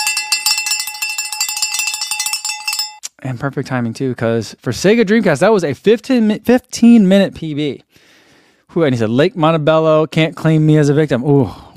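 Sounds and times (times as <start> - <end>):
soundboard cowbell effect: 0.0 - 3.0
speech: 3.2 - 8.1, 8.7 - 11.7.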